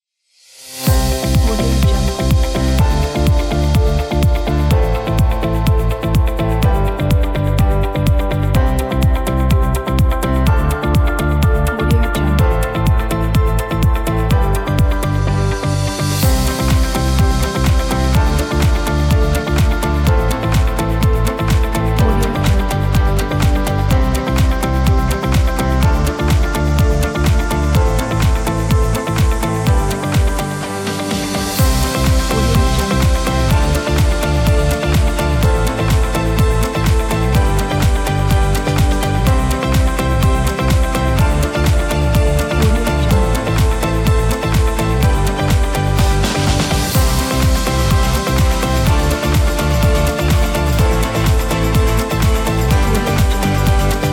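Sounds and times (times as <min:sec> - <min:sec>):
happy inspiring music: 0:00.7 - 0:54.1.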